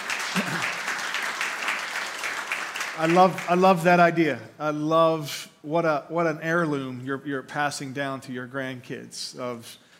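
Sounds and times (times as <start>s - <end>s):
audience clapping: 0.0s - 3.9s
speech: 3.0s - 9.8s.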